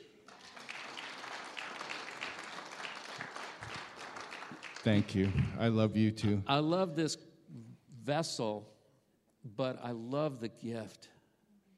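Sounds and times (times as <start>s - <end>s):
crowd applauding: 0.0s - 5.7s
speech: 4.8s - 7.3s, 8.0s - 8.8s, 9.4s - 11.1s.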